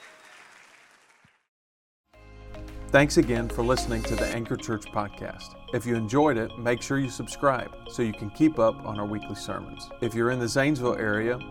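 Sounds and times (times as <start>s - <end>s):
audience hand clapping: 0.0s - 1.5s
speech: 2.9s - 11.5s.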